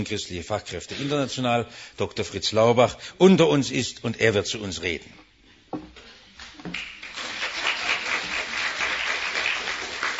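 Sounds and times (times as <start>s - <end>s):
speech: 0.0s - 5.2s
audience applause: 6.7s - 10.1s.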